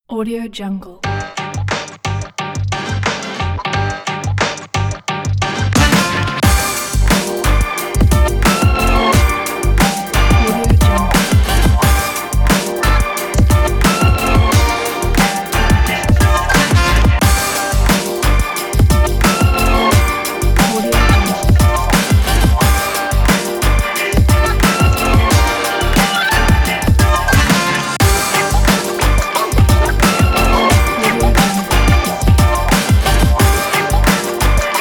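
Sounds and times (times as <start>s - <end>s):
hip hop music: 1.0s - 34.7s.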